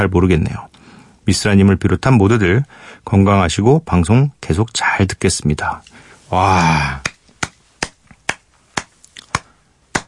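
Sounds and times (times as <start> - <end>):
speech: 0.0 - 7.1
person clapping hands: 7.0 - 10.0.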